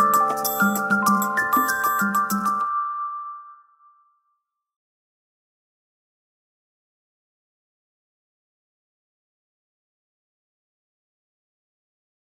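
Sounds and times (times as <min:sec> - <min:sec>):
Huawei phone ringtones: 0:00.0 - 0:04.1.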